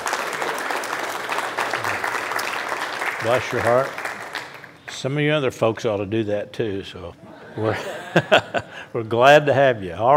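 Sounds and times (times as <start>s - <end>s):
audience welcome applause: 0.0s - 4.8s
speech: 3.2s - 4.0s, 5.0s - 10.1s
laughter: 7.2s - 8.9s.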